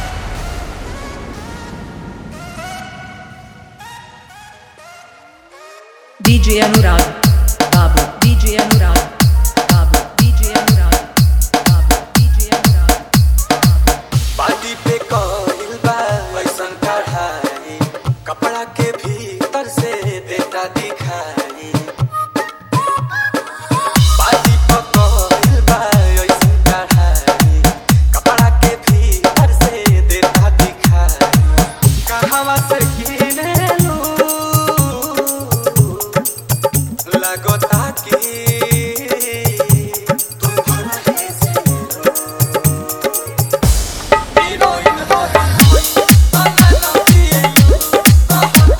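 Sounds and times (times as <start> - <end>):
dholki mix: 6.3 - 48.7.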